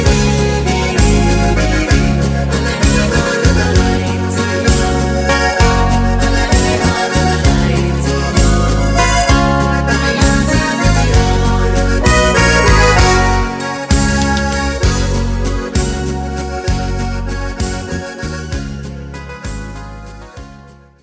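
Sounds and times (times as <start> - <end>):
choir singing: 0.0 - 16.7
karaoke singing: 0.0 - 20.6.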